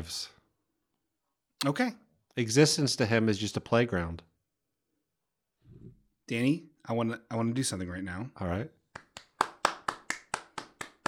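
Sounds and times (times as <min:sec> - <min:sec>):
speech: 0:00.0 - 0:00.4, 0:01.6 - 0:04.3, 0:06.3 - 0:08.8
hands clapping: 0:08.9 - 0:11.0.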